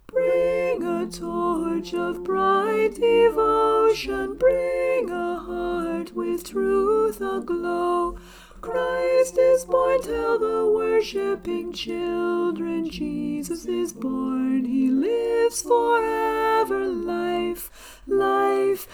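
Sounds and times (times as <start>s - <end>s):
soprano singing a carol: 0.0s - 18.9s.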